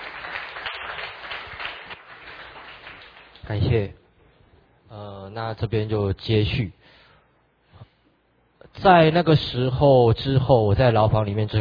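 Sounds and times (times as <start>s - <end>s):
audience applause: 0.0s - 3.4s
speech: 3.5s - 4.0s, 5.0s - 6.8s, 8.8s - 11.6s.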